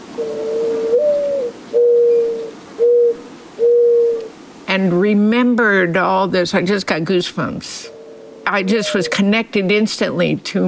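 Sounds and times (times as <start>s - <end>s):
Mourning Dove cooing: 0.0s - 4.4s, 7.6s - 9.8s
speech: 0.2s - 0.5s, 4.8s - 10.6s.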